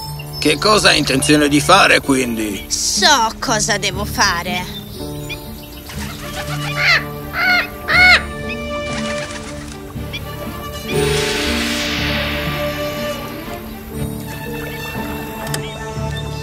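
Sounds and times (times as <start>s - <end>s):
dense chaotic rushing hissing din: 0.0s - 3.6s, 5.4s - 16.0s
speech: 0.4s - 5.1s
crow cawing during bird attack: 6.1s - 8.8s.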